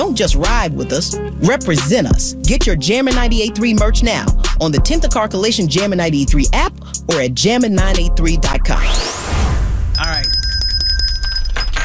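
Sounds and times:
speech: 0:00.0 - 0:09.4
bell ringing: 0:09.9 - 0:11.8.

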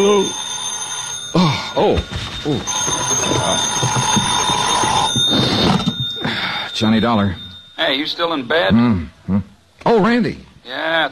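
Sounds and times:
speech: 0:00.0 - 0:00.4, 0:01.3 - 0:04.4, 0:06.8 - 0:11.1
telephone ringing: 0:00.0 - 0:08.7.

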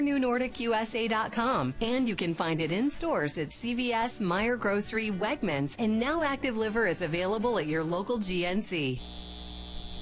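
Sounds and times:
speech: 0:00.0 - 0:09.4
data center electrical drone: 0:09.0 - 0:10.0.

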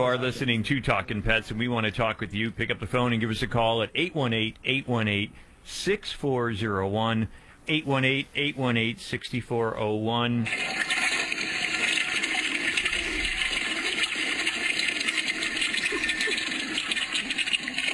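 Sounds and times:
speech: 0:00.0 - 0:11.0
toilet flushing: 0:10.4 - 0:17.9.

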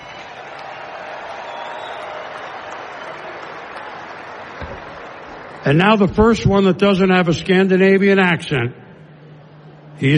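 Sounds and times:
audience applause: 0:00.0 - 0:05.8
speech: 0:05.6 - 0:08.8, 0:10.0 - 0:10.1.

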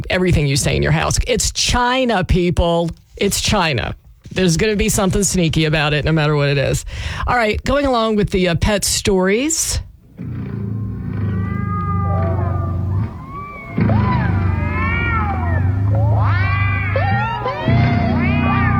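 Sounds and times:
speech: 0:00.0 - 0:10.5
electric guitar wailing in swooping bending notes: 0:10.1 - 0:18.7.

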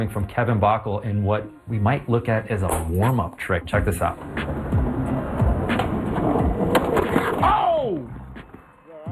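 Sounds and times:
speech: 0:00.0 - 0:04.7
skateboard rumbling over concrete: 0:03.8 - 0:08.7
skateboarder slamming onto concrete: 0:04.2 - 0:07.8.

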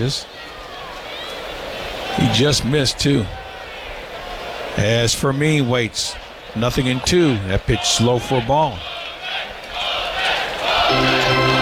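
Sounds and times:
speech: 0:00.0 - 0:00.6, 0:02.2 - 0:03.4, 0:04.8 - 0:09.5, 0:10.9 - 0:11.2
ballpark crowd cheering: 0:00.0 - 0:11.6
sustained tonal voice or horn: 0:10.9 - 0:11.6.

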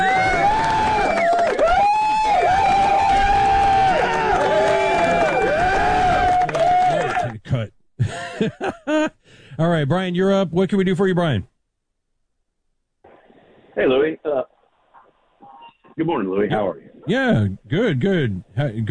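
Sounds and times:
applause and cheering from audience: 0:00.0 - 0:07.4
laughter: 0:08.0 - 0:09.2
speech: 0:09.6 - 0:11.5, 0:13.8 - 0:14.5, 0:16.0 - 0:18.8.

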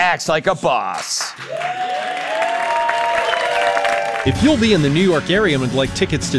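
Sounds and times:
speech: 0:00.1 - 0:02.2, 0:04.2 - 0:06.3
late-night talk show studio audience applause: 0:00.9 - 0:04.8.

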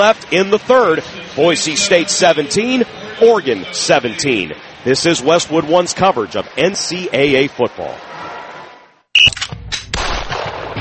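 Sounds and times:
speech: 0:00.0 - 0:08.2
gunshots at a shooting range in Louisville: 0:09.7 - 0:10.7.

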